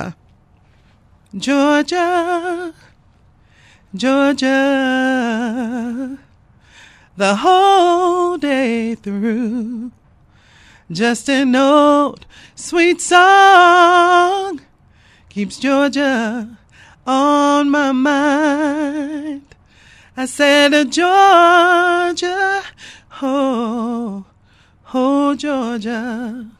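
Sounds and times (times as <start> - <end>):
a cappella singing: 1.3 - 2.9, 3.9 - 6.4, 7.1 - 10.0, 10.8 - 14.7, 15.3 - 26.5.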